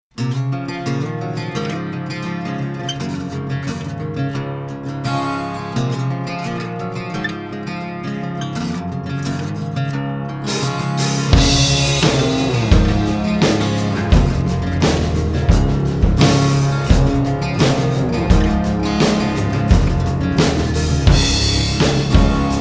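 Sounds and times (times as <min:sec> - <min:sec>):
acoustic music: 0:00.2 - 0:22.5.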